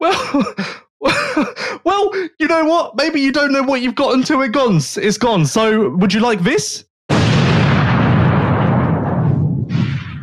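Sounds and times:
speech: 0.0s - 0.8s, 1.8s - 6.9s
thunder: 7.1s - 10.2s.

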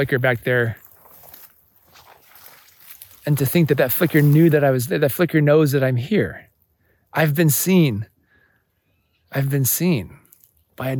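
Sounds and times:
speech: 0.0s - 0.8s, 3.2s - 6.5s, 7.1s - 8.1s, 9.3s - 10.2s, 10.8s - 10.9s
footsteps crunching on dry grass: 0.0s - 4.8s.

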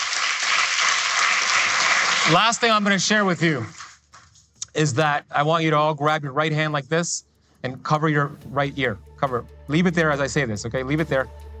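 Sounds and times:
audience applause: 0.0s - 2.8s
speech: 2.3s - 3.8s, 4.8s - 11.5s.

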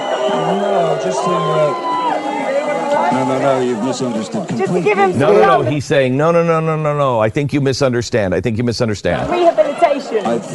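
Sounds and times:
large crowd cheering and booing: 0.0s - 5.8s, 9.2s - 10.5s
speech: 0.3s - 2.0s, 3.0s - 10.5s.

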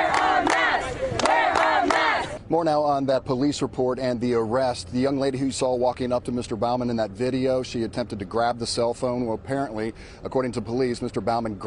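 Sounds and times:
classmates chanting along a fence: 0.0s - 2.4s
speech: 2.5s - 11.6s.

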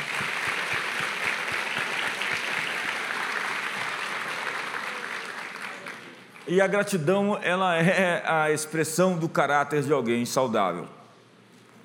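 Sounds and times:
audience applause: 0.0s - 6.5s
speech: 6.5s - 11.0s.

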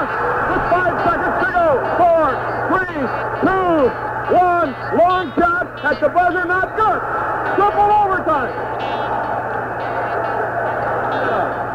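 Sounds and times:
basketball crowd cheering: 0.0s - 11.7s.

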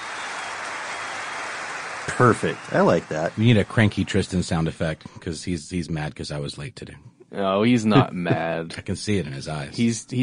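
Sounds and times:
crowd applause sound effect: 0.0s - 5.0s
laughter: 2.1s - 6.7s, 7.4s - 10.2s
speech: 2.1s - 10.2s.

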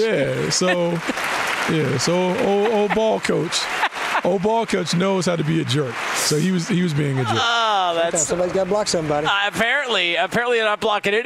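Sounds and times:
laughter: 0.0s - 8.2s
round of applause: 0.0s - 10.4s
speech: 0.0s - 11.2s.

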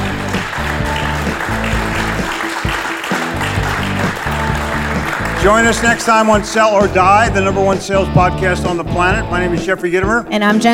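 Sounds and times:
applause: 0.0s - 6.8s
speech: 5.4s - 10.7s.

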